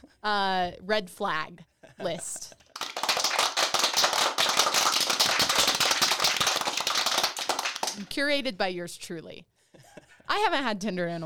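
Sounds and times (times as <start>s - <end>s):
speech: 0.2s - 2.6s, 8.0s - 9.5s, 10.3s - 11.2s
applause: 2.6s - 8.1s.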